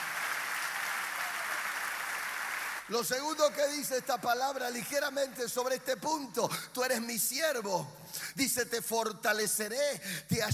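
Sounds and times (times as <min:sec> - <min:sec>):
audience applause: 0:00.0 - 0:05.2
speech: 0:02.9 - 0:10.5.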